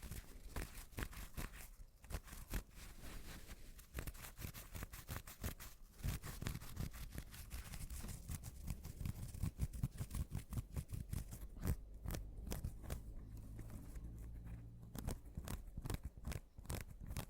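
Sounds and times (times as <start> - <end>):
mini scratching: 0.0 - 17.2.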